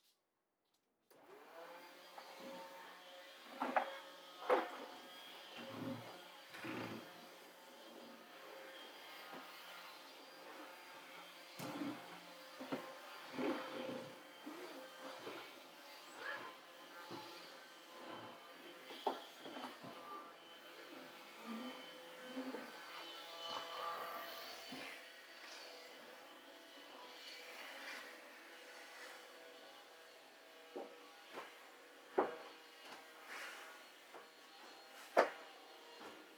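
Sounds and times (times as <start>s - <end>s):
vacuum cleaner running: 1.1s - 36.3s.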